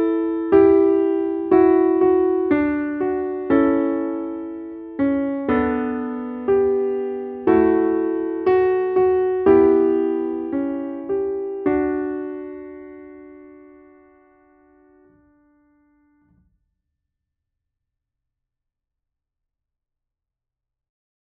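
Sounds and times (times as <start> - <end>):
piano piece: 0.0 - 16.1.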